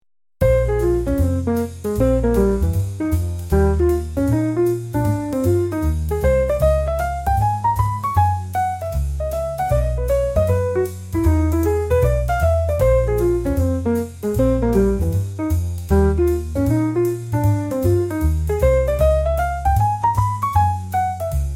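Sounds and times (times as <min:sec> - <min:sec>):
jazz serenade: 0:00.4 - 0:21.5.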